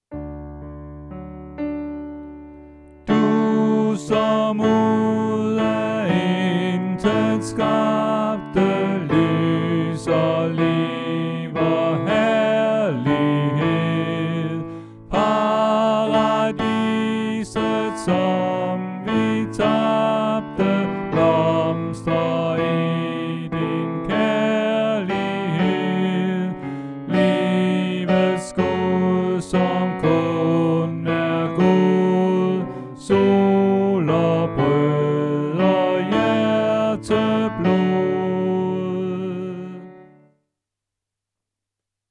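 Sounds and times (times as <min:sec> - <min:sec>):
tenor singing: 0:03.0 - 0:40.2.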